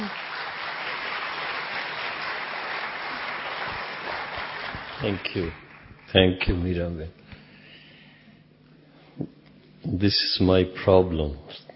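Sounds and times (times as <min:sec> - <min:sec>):
audience clapping in welcome: 0:00.0 - 0:06.8
speech: 0:05.0 - 0:07.2, 0:09.2 - 0:11.6.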